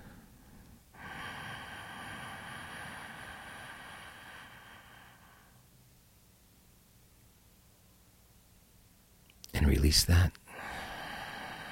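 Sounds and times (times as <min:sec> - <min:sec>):
long slow deep inhalation during a guided breathing exercise: 0:00.0 - 0:05.7, 0:10.5 - 0:11.7
speech: 0:09.7 - 0:10.4.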